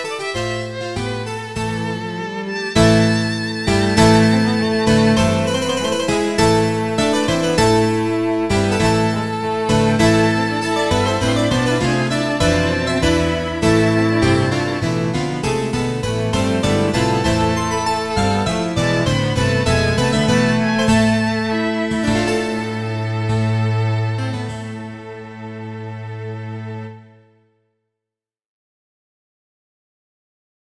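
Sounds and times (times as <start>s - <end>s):
harpsichord playing a suite: 0.0s - 25.5s
string ensemble: 0.0s - 27.4s.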